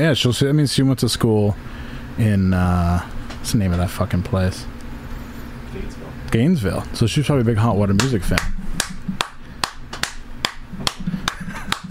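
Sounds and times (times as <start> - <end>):
speech: 0.0 - 4.7, 5.8 - 8.5
hands clapping: 8.0 - 11.8.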